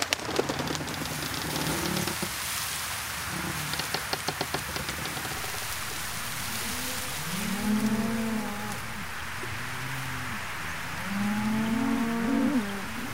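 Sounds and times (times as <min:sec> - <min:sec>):
steady hiss: 0:00.0 - 0:13.1
cattle mooing: 0:06.3 - 0:13.1.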